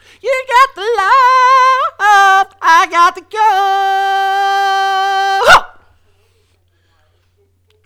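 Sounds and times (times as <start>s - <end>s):
dance vocal: 0.2s - 5.6s.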